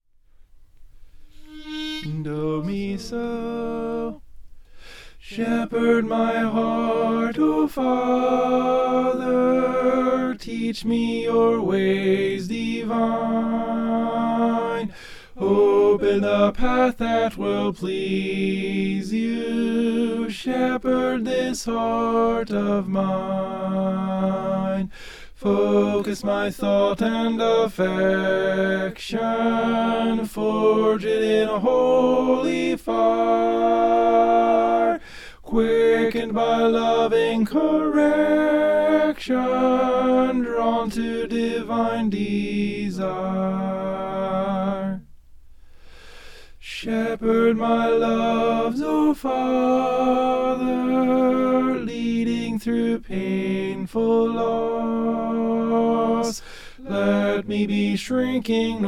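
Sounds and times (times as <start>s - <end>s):
tenor singing: 1.3s - 4.3s, 5.2s - 45.1s, 46.6s - 58.8s.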